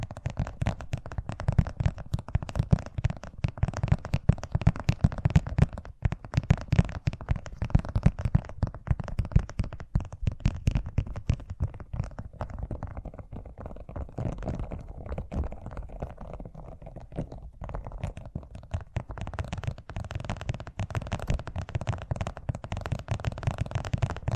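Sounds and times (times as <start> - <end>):
fast ASMR tapping: 0.0 - 24.3.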